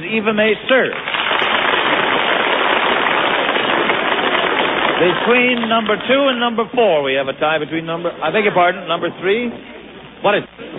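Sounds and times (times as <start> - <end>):
speech: 0.1 - 1.1, 5.0 - 10.7
audience applause: 0.4 - 6.7.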